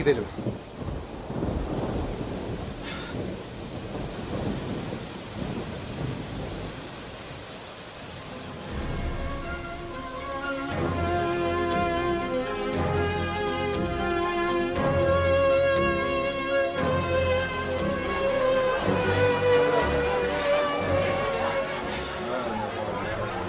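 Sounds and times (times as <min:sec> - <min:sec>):
deep thunder rumbling: 0:00.0 - 0:23.4
heavy rain: 0:00.0 - 0:23.4.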